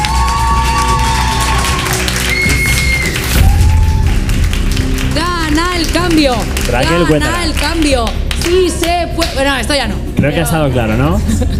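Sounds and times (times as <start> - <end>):
audience applause: 0.0 - 9.0
speech: 6.2 - 11.5.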